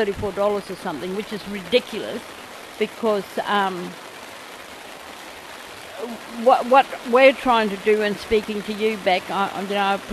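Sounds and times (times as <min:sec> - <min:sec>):
speech: 0:00.0 - 0:04.0, 0:06.0 - 0:10.1
rain: 0:00.0 - 0:10.1.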